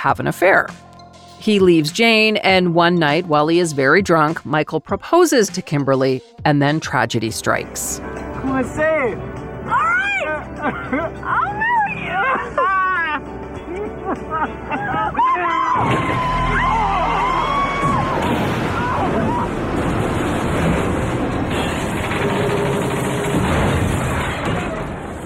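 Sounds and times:
speech: 0:00.0 - 0:09.8, 0:10.6 - 0:12.8, 0:14.1 - 0:16.5
laughter: 0:10.2 - 0:16.1
person screaming: 0:15.2 - 0:19.5
car plunging off a cliff: 0:15.7 - 0:25.2.

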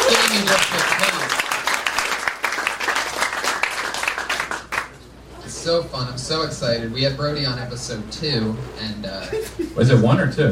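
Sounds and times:
audience applause: 0:00.0 - 0:05.0
speech: 0:05.7 - 0:10.5.

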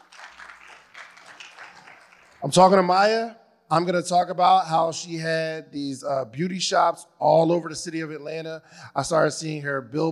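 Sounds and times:
crowd applauding: 0:00.0 - 0:02.6
speech: 0:02.4 - 0:10.1.

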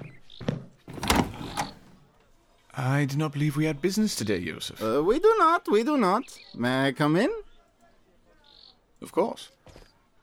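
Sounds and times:
door thuds as it is opened: 0:00.9 - 0:02.0
speech: 0:02.8 - 0:07.5, 0:09.0 - 0:09.8.

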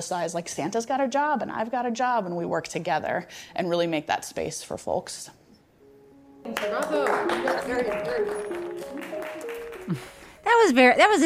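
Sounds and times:
speech: 0:00.0 - 0:05.4, 0:06.4 - 0:09.2, 0:09.9 - 0:11.2
audience clapping: 0:06.5 - 0:10.4.

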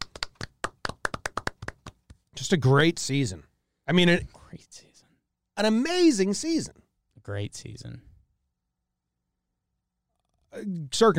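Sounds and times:
hand clapping: 0:00.0 - 0:02.3
speech: 0:02.4 - 0:04.9, 0:05.6 - 0:08.1, 0:10.6 - 0:11.1.

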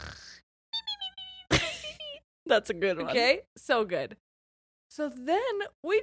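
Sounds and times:
voice imitating snoring: 0:00.0 - 0:00.4
speech: 0:02.5 - 0:04.3, 0:04.9 - 0:06.0.

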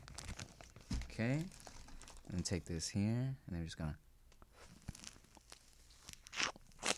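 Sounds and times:
speech: 0:01.2 - 0:01.6, 0:02.3 - 0:04.0
person chewing into a whole lemon: 0:04.8 - 0:06.9.

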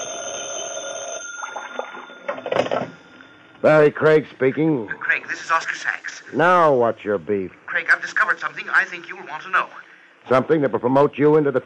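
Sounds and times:
telephone bell ringing: 0:00.0 - 0:03.6
speech: 0:03.6 - 0:11.6.

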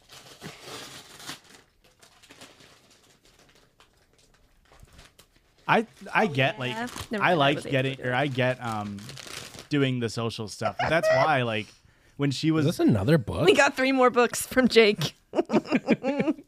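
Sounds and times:
mail packages ripped open, paper and plastic tearing: 0:00.0 - 0:09.9
speech: 0:05.7 - 0:16.4
people talking loudly: 0:06.1 - 0:07.8
laughter: 0:10.6 - 0:11.6, 0:15.4 - 0:16.4.

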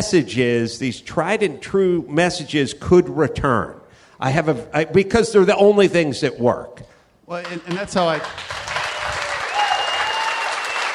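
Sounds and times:
speech: 0:00.0 - 0:08.6
audience applause: 0:07.4 - 0:10.9.

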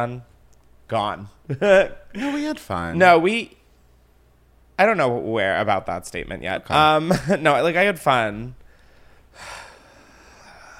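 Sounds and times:
speech: 0:00.0 - 0:00.3, 0:00.9 - 0:03.6, 0:04.8 - 0:08.6, 0:09.4 - 0:09.6
sharp intake of breath: 0:08.7 - 0:10.7.

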